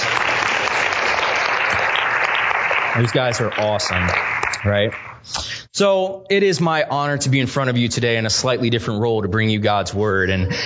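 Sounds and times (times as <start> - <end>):
crowd applause: 0.0 - 5.2
speech: 3.0 - 10.6.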